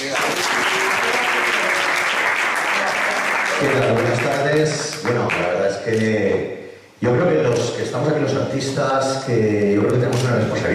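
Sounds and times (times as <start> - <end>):
applause: 0.0 - 5.5
speech: 3.6 - 10.7.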